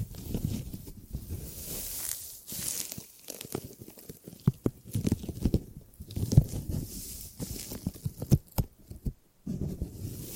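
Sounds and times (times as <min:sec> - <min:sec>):
gripping and grabbing handling noises: 0:00.0 - 0:10.3.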